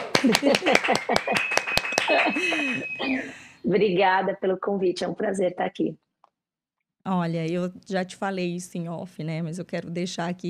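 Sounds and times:
audience applause: 0:00.0 - 0:02.8
laughter: 0:00.1 - 0:03.3
speech: 0:00.2 - 0:06.1, 0:07.0 - 0:10.4.

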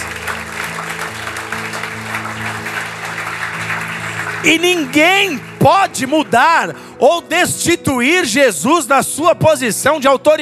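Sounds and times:
audience applauding: 0:00.0 - 0:06.5
sustained low keyboard chords: 0:00.0 - 0:10.4
speech: 0:04.4 - 0:10.4.

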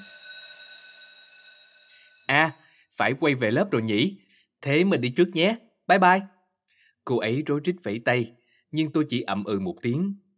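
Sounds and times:
school bell ringing for class: 0:00.0 - 0:02.9
speech: 0:02.4 - 0:06.4, 0:07.1 - 0:10.2.

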